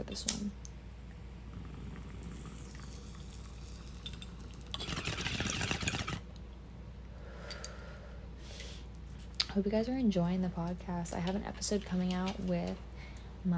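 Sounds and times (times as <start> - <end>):
speech: 0.1 - 0.7, 9.6 - 13.5
water bubbling in a bong: 0.9 - 6.3.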